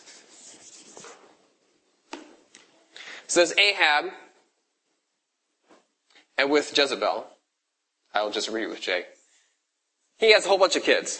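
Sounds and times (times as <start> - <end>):
eraser rubbing writing off a board: 0.0 - 1.4
speech: 3.3 - 4.2, 6.4 - 7.4, 8.1 - 9.2, 10.2 - 11.1.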